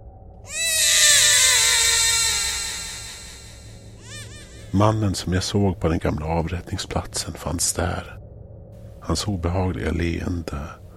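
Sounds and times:
child screaming loudly: 0:00.5 - 0:04.7
speech: 0:04.7 - 0:08.2, 0:09.1 - 0:10.8.

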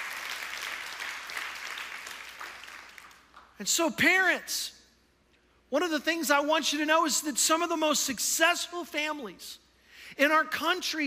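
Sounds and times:
crowd applauding: 0:00.0 - 0:03.5
speech: 0:03.6 - 0:04.8, 0:05.7 - 0:11.0.

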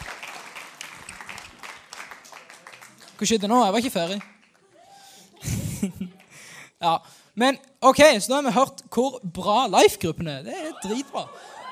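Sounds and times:
applause: 0:00.0 - 0:05.0
speech: 0:03.2 - 0:04.3, 0:05.8 - 0:06.2, 0:06.8 - 0:11.6
laughter: 0:04.6 - 0:06.4, 0:10.5 - 0:11.7.

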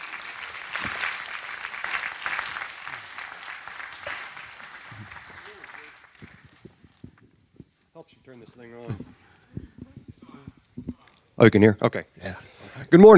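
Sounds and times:
audience applause: 0:00.0 - 0:07.0
speech: 0:08.1 - 0:09.2, 0:11.4 - 0:13.1.

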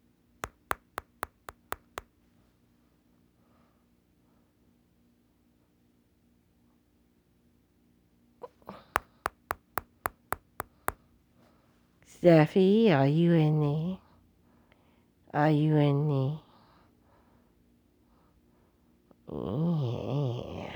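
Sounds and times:
knocking on a door: 0:00.4 - 0:02.0, 0:09.0 - 0:11.0
speech: 0:12.2 - 0:14.0, 0:15.3 - 0:16.4, 0:19.3 - 0:20.2.

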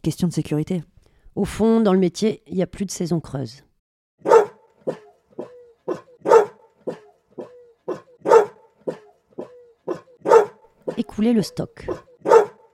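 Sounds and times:
speech: 0:00.0 - 0:03.7, 0:11.2 - 0:12.1
dogs barking at animal shelter: 0:04.2 - 0:11.1, 0:11.8 - 0:12.7.

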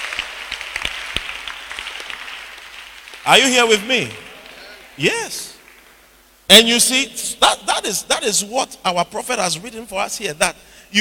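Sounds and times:
audience clapping: 0:00.0 - 0:06.2
speech: 0:03.2 - 0:04.2, 0:05.0 - 0:05.5, 0:06.5 - 0:10.9.

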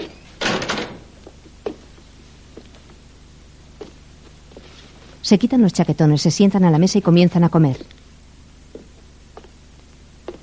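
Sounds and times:
door closing: 0:00.0 - 0:01.2
speech: 0:05.2 - 0:08.0.

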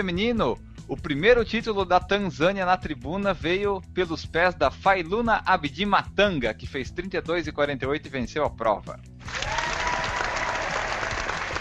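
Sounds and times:
speech: 0:00.0 - 0:09.6
round of applause: 0:09.2 - 0:11.5.

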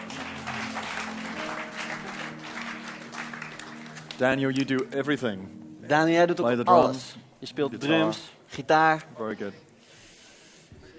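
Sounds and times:
audience applause for the band: 0:00.0 - 0:04.9
speech: 0:04.2 - 0:09.7.

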